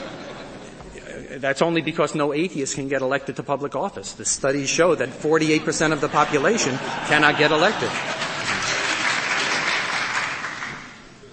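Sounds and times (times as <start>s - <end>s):
laughter: 0.0s - 1.3s, 5.0s - 10.7s
speech: 1.3s - 8.2s
people clapping in a courtroom: 6.2s - 11.1s.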